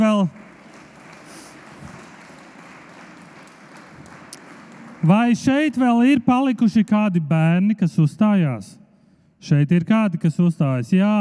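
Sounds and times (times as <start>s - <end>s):
audience applause for performing children: 0.0s - 5.7s
speech: 5.0s - 8.8s, 9.4s - 11.1s.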